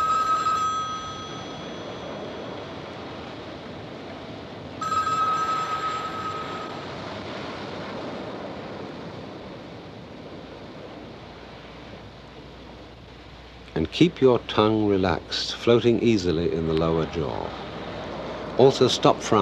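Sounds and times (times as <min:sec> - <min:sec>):
telephones ringing: 0:00.0 - 0:02.9, 0:04.8 - 0:07.0
speech: 0:13.8 - 0:17.7, 0:18.6 - 0:19.4.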